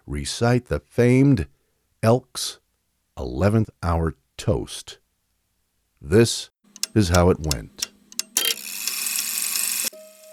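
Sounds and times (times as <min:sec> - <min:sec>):
speech: 0:00.1 - 0:02.6, 0:03.2 - 0:05.0, 0:06.0 - 0:07.9
clock tolling: 0:06.7 - 0:10.0.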